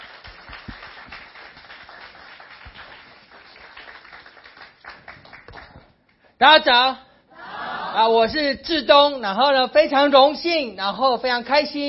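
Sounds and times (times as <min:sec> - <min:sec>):
audience clapping in welcome: 0:00.0 - 0:06.2
speech: 0:06.4 - 0:07.0, 0:07.9 - 0:11.8.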